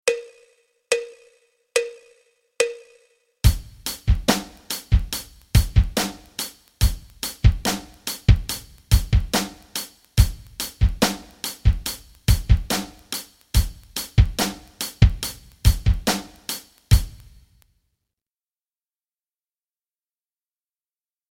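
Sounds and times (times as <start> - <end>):
rock rhythms: 3.4 - 17.4.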